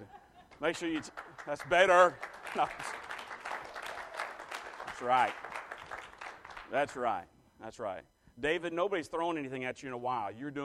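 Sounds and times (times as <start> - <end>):
polite clapping: 0.5 - 7.0
speech: 0.6 - 3.1, 5.0 - 5.5, 6.7 - 10.6.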